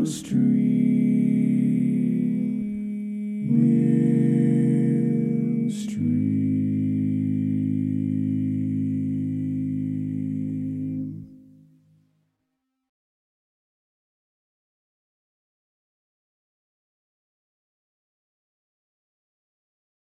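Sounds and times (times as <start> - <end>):
tenor voice singing a learning track: 0.0 - 11.5.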